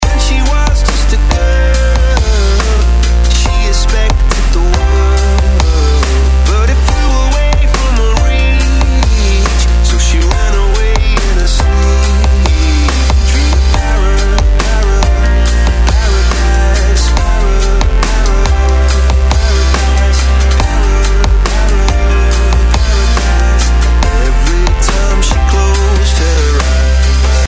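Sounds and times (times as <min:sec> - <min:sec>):
dubstep remix: 0:00.0 - 0:27.4.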